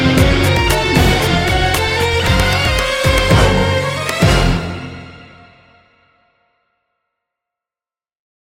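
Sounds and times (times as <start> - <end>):
Bollywood action hero music: 0.0 - 6.5.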